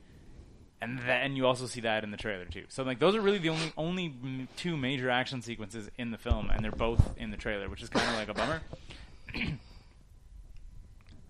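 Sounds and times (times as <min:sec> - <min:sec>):
speech: 0:00.8 - 0:09.7
person coughing: 0:07.9 - 0:08.7, 0:09.3 - 0:09.8.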